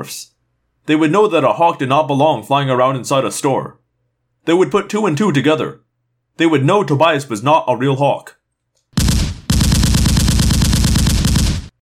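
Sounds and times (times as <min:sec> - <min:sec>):
speech: 0:00.0 - 0:03.8, 0:04.4 - 0:05.8, 0:06.4 - 0:08.4
machine gun firing: 0:09.0 - 0:11.7.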